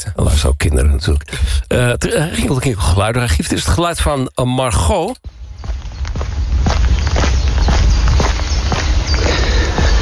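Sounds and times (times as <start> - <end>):
speech: 0.0 - 5.4
footsteps on a walk through a polder: 5.3 - 10.0.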